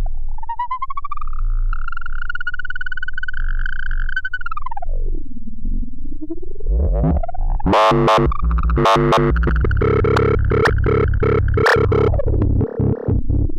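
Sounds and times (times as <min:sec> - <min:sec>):
psycho LFO synth modulation: 0:00.1 - 0:13.5.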